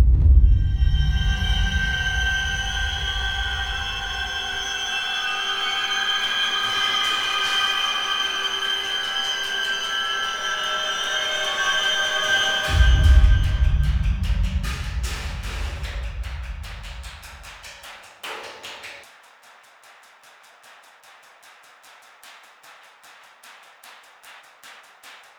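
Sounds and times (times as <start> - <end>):
suspense music: 0.0 - 17.9.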